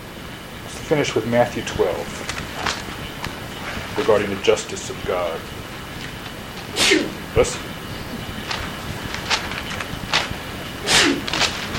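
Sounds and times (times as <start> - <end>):
low hiss: 0.0 - 11.7
speech: 0.8 - 2.7, 4.0 - 5.6, 6.8 - 7.7
sneezes: 6.7 - 7.2, 10.8 - 11.4.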